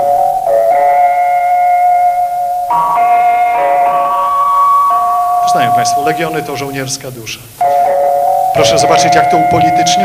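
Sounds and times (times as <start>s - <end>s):
radio interval signal with reedy tones: 0.0s - 10.0s
speech: 5.5s - 7.7s, 8.6s - 10.0s.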